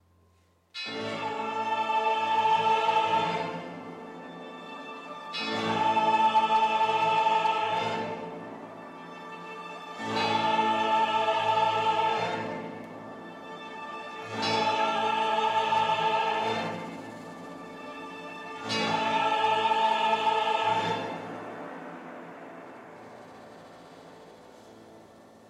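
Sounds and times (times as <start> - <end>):
joyful choir singing: 0.8 - 25.4.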